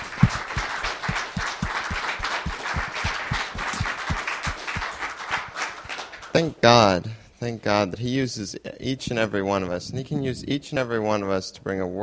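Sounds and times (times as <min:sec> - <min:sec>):
audience clapping: 0:00.0 - 0:06.5
speech: 0:06.4 - 0:12.0.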